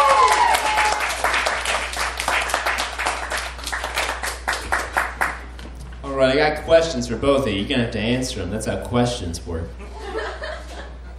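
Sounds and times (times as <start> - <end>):
audience applause: 0.0 - 5.5
speech: 6.2 - 9.8
laughter: 9.8 - 11.1.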